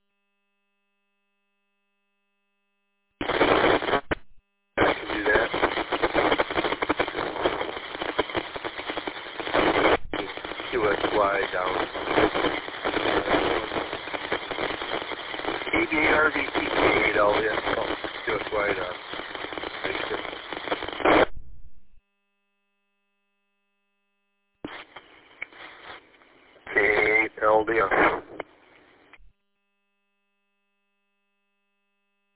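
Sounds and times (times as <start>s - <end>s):
radio static crackle over a narrow tinny transmission: 3.2s - 22.0s, 24.6s - 29.3s
garbled radio voice: 4.8s - 5.8s, 9.5s - 13.9s, 15.6s - 19.0s, 19.8s - 20.2s, 26.7s - 28.4s
noisy radio chatter: 4.8s - 21.3s, 24.7s - 28.9s.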